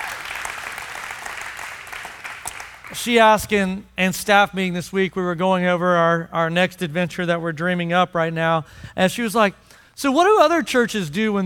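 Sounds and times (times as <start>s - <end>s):
church congregation applauding: 0.0s - 3.2s
speech: 2.9s - 11.4s.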